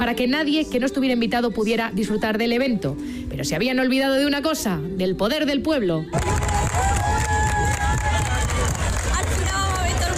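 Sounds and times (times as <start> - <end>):
speech: 0.0 - 6.6
crowd cheering and applauding: 6.1 - 10.1.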